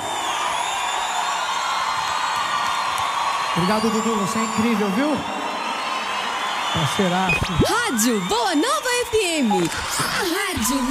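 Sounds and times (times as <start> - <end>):
audience applause: 0.0 - 10.8
speech: 3.6 - 5.4, 6.8 - 10.8.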